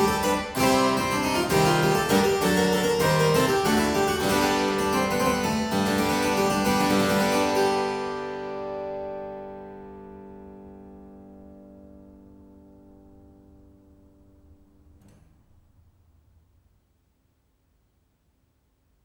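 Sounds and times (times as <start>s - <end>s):
harpsichord: 0.0s - 10.2s.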